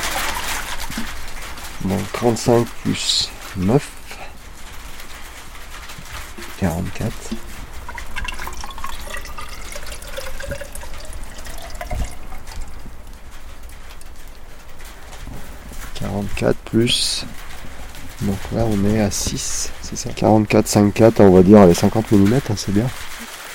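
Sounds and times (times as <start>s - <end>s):
rainwater trickling into measuring test tubes: 0.0s - 16.5s
speech: 1.8s - 4.0s, 6.6s - 7.5s, 16.4s - 17.4s, 18.2s - 23.1s.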